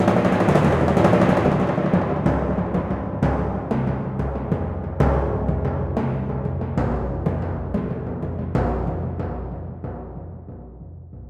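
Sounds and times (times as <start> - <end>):
timpani notes G C F A sharp: 0.0 - 11.2.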